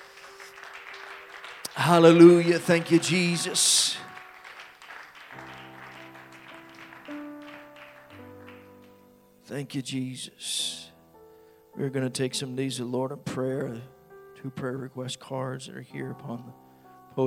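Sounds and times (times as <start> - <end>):
audience applauding: 0.0 - 9.0
speech: 1.8 - 4.1, 9.6 - 10.9, 11.8 - 16.6.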